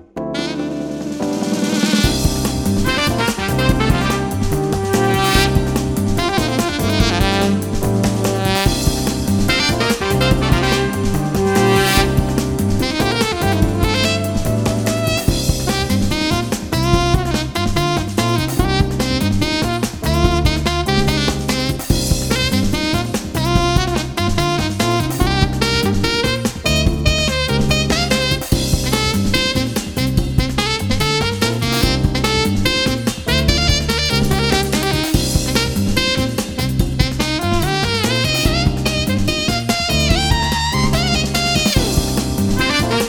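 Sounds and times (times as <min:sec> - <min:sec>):
saxophone: 0:00.4 - 0:43.0.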